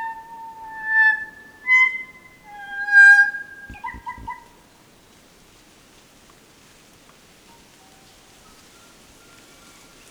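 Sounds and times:
kokako song with organ-like notes: 0.9s - 4.4s.

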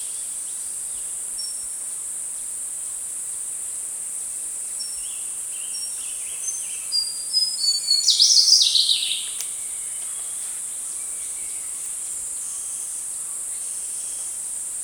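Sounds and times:
slaty-bellied tesia singing: 4.7s - 14.4s.

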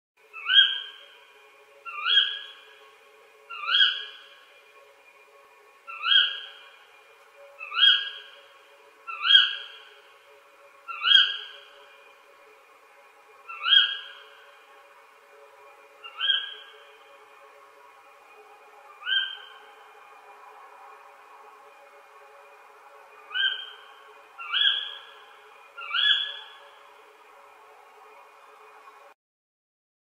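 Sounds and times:
birds at night: 0.3s - 1.2s, 1.8s - 2.8s, 3.4s - 4.5s, 5.8s - 6.8s, 7.5s - 10.2s, 10.8s - 12.1s, 13.4s - 14.8s, 16.0s - 17.1s, 19.0s - 19.9s, 23.2s - 27.0s.

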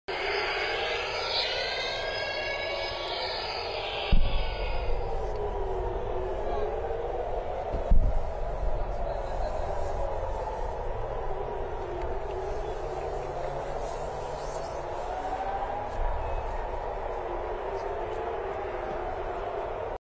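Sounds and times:
war air raid siren: 0.1s - 19.9s.

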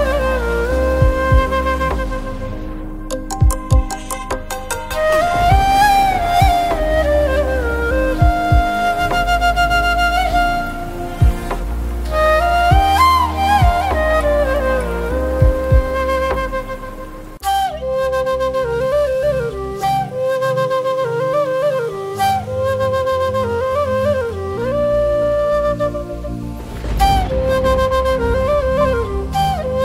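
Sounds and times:
flute: 0.0s - 29.8s
rain: 0.0s - 29.8s.

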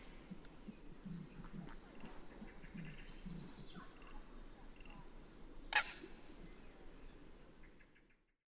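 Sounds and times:
Tasmanian nativehen: 0.0s - 6.5s.

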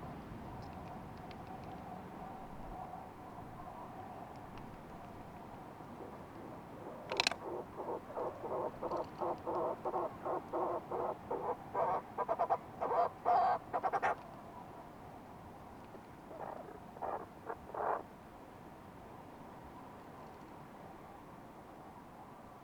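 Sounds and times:
constant low background noise: 0.0s - 22.6s
fulmar prion call of rhythmic croaking pulses: 5.9s - 14.2s, 16.3s - 18.0s.

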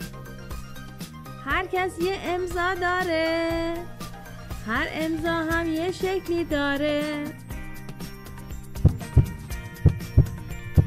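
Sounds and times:
sustained musical backing: 0.0s - 10.8s
speech: 1.5s - 4.0s, 4.7s - 7.4s
slow heartbeat: 8.8s - 10.8s.

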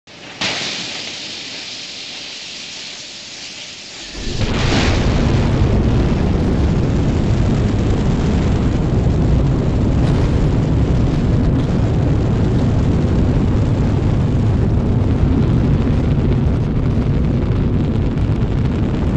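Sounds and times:
space shuttle: 4.0s - 19.1s.

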